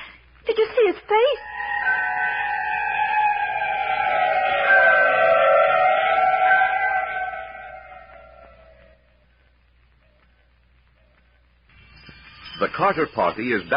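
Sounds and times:
speech: 0.9 - 1.5, 12.8 - 13.7
howls of wolfmen: 1.4 - 9.0.

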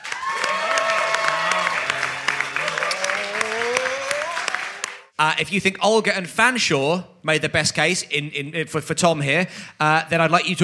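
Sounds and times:
audience applause: 0.0 - 5.1
speech: 5.2 - 10.6.

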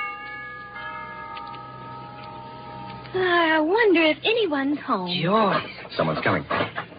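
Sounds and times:
doorbell ringing: 0.0 - 3.6
speech: 3.1 - 6.8.

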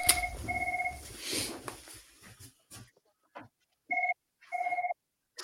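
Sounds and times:
telephone ringing: 0.0 - 1.0, 3.9 - 5.0.

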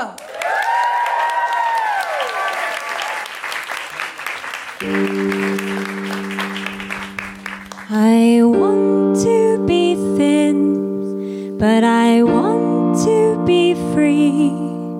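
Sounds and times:
audience applause and cheering at a live show: 0.0 - 8.0
sustained musical chords: 4.8 - 14.9.

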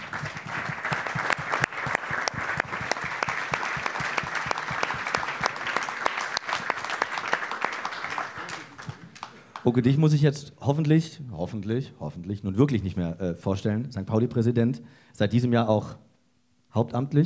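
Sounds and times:
audience applause: 0.0 - 9.7
speech: 9.6 - 16.0, 16.7 - 17.2.

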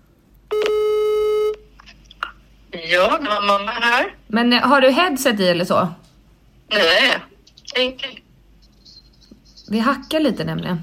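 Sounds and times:
telephone call tone while redialing: 0.5 - 1.6
speech: 2.9 - 6.0, 6.7 - 8.2, 9.7 - 10.8.

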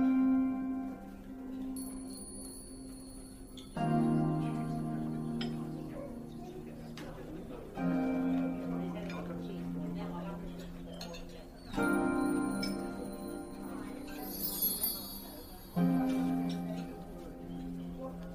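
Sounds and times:
low sustained tones: 1.7 - 18.3
light chiming bell-like sparkles: 1.8 - 5.8, 11.0 - 17.1.

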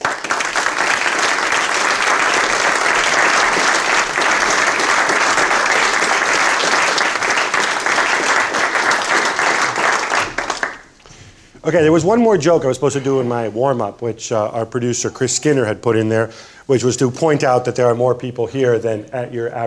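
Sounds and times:
audience round of applause: 0.0 - 11.0
speech: 11.7 - 19.6.

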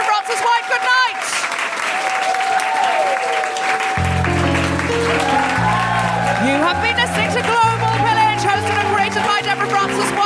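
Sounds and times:
audience applause: 0.0 - 10.2
sustained musical chord: 4.0 - 10.2.

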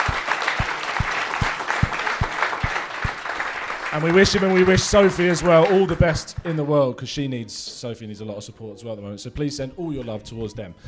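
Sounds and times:
audience applause: 0.0 - 6.7
speech: 3.9 - 10.8.

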